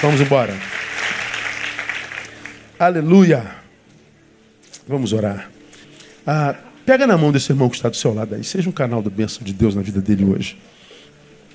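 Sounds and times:
speech: 0.0 - 0.8, 2.8 - 3.6, 4.9 - 5.5, 6.2 - 10.8
audience applauding: 0.0 - 2.8.

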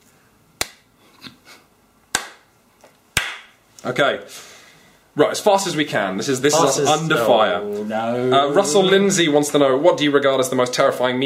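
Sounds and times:
hand clapping: 0.6 - 0.9, 2.1 - 3.6
speech: 3.8 - 4.5, 5.2 - 11.2.

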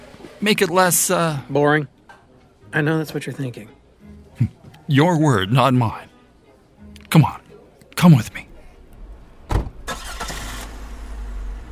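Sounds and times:
speech: 0.4 - 2.0, 2.7 - 3.8, 4.4 - 6.1, 7.1 - 7.4, 8.0 - 8.5
van engine rumbling: 9.0 - 11.6.

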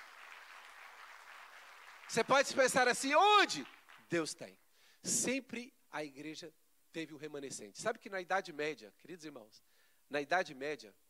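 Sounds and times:
audience applause: 0.0 - 4.1
speech: 2.1 - 11.0.

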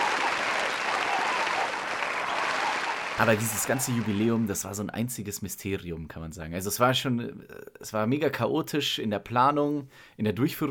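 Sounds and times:
audience applause: 0.0 - 4.6
speech: 3.2 - 10.6.

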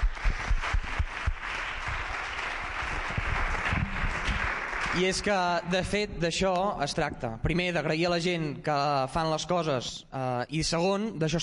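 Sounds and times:
audience applause: 0.0 - 5.4
speech: 5.0 - 11.4.

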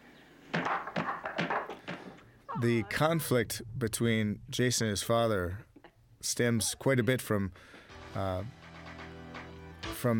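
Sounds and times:
strikes on a wooden martial arts dummy: 0.5 - 2.2
speech: 2.6 - 8.6, 10.0 - 10.1.

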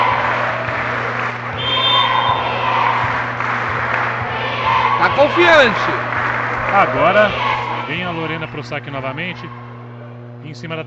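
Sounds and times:
volleyball crowd cheering and shouting: 0.0 - 10.2
thin high whistling tone: 1.6 - 2.5
speech: 5.2 - 6.0, 6.7 - 9.6, 10.4 - 10.8.

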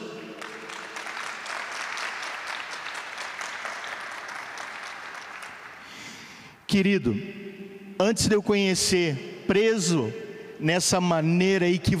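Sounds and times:
audience applauding: 0.0 - 6.2
speech: 6.7 - 7.4, 8.0 - 11.9.

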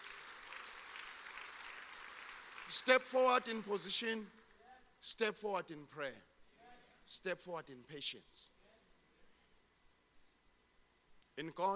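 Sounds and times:
audience applause: 0.0 - 3.9
speech: 2.7 - 4.4, 5.0 - 6.3, 7.1 - 8.6, 11.4 - 11.7.

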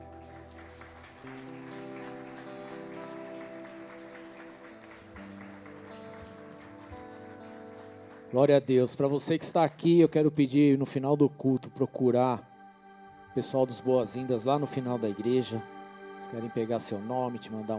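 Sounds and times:
crowd applauding: 0.0 - 10.3
sustained keyboard chords: 0.0 - 17.7
speech: 8.3 - 12.5, 13.3 - 17.7.

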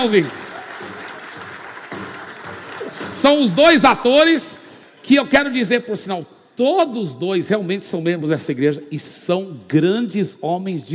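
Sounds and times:
speech: 0.0 - 0.4, 3.2 - 10.9
round of applause: 0.0 - 3.6.

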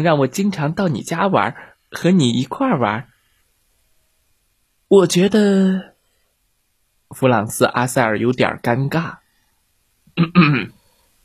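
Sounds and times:
speech: 0.0 - 3.1, 4.9 - 5.9, 7.1 - 9.2, 10.2 - 10.8
throat clearing: 10.2 - 10.8.

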